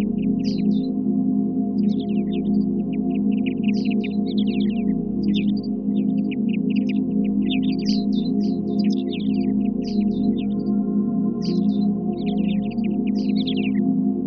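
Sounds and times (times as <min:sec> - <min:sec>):
forest sounds: 0:00.0 - 0:00.9, 0:01.8 - 0:10.8, 0:11.4 - 0:14.2
meditation music: 0:00.0 - 0:14.2.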